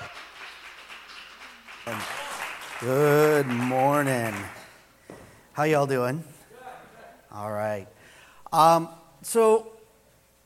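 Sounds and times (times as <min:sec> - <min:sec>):
audience applause for a speaker's welcome: 0:00.0 - 0:04.7
speech: 0:01.8 - 0:02.2, 0:02.8 - 0:04.6, 0:05.6 - 0:06.3, 0:07.3 - 0:09.7.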